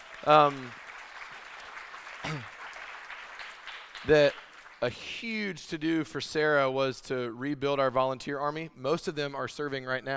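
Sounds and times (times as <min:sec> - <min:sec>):
audience applause: 0:00.0 - 0:04.9
speech: 0:00.2 - 0:00.8, 0:02.2 - 0:02.5, 0:04.0 - 0:10.1.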